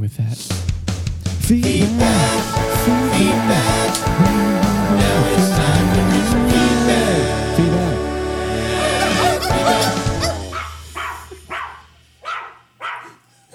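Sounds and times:
speech: 0:00.0 - 0:00.8, 0:01.4 - 0:03.3
laughter: 0:02.1 - 0:08.0, 0:08.6 - 0:10.5
coyotes yipping and howling in the mountains: 0:08.8 - 0:13.5.

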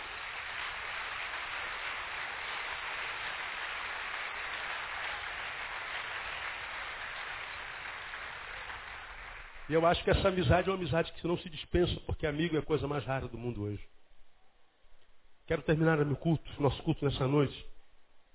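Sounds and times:
audience applause: 0:00.0 - 0:10.4
speech: 0:09.7 - 0:14.0, 0:15.5 - 0:17.7.

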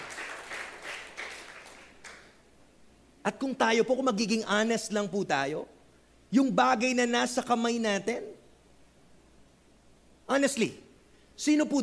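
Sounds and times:
church congregation applauding: 0:00.0 - 0:02.4
speech: 0:03.2 - 0:08.3, 0:10.3 - 0:10.8, 0:11.4 - 0:11.8.

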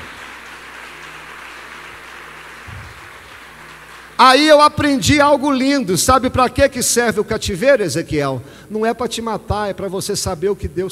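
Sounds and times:
crowd applause: 0:00.0 - 0:04.5
speech: 0:04.2 - 0:10.9.

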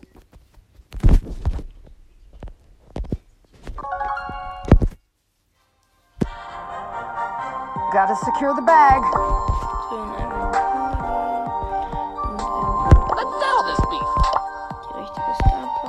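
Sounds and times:
game startup ringing tonal chime: 0:03.8 - 0:04.8, 0:08.2 - 0:15.8
video game music: 0:03.8 - 0:04.8, 0:06.2 - 0:15.8
Brawl Stars video game startup thuds: 0:07.8 - 0:14.8
speech: 0:08.0 - 0:10.5.

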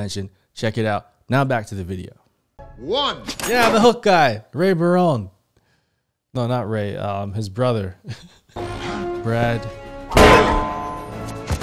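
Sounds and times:
speech: 0:00.0 - 0:02.2, 0:02.8 - 0:05.4, 0:06.3 - 0:10.6
frying pan striking something: 0:10.1 - 0:11.6.

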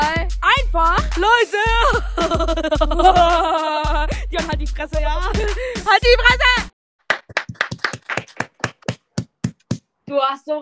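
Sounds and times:
speech: 0:00.7 - 0:03.6, 0:04.4 - 0:06.6
laughter: 0:01.6 - 0:04.2
hand clapping: 0:07.1 - 0:09.8.

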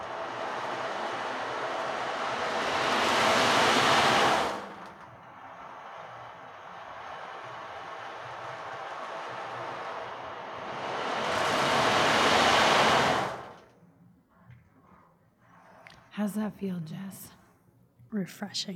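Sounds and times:
ocean drum played during a meditation: 0:00.0 - 0:13.6
speech: 0:16.2 - 0:17.4, 0:18.1 - 0:18.7.

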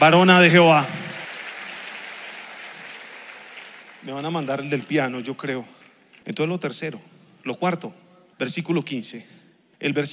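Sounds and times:
speech: 0:00.0 - 0:01.0, 0:04.0 - 0:10.1
audience applauding: 0:00.0 - 0:06.0.

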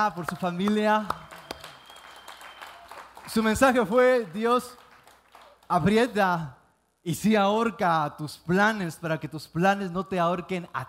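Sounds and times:
speech: 0:00.0 - 0:01.3, 0:03.3 - 0:04.8, 0:05.7 - 0:10.8
crowd applauding: 0:00.0 - 0:05.7.

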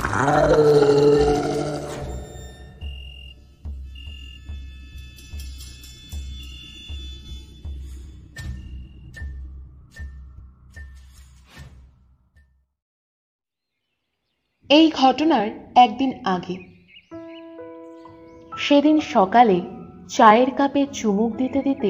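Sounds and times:
fierce growling roar of a demonic shadowy figure: 0:00.0 - 0:02.4
speech: 0:00.2 - 0:01.1, 0:14.7 - 0:16.7, 0:18.7 - 0:21.8.

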